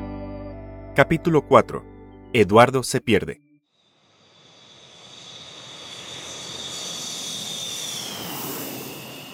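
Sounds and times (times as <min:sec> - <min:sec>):
speech: 0:01.0 - 0:03.4
airplane engine in flight: 0:03.9 - 0:09.3.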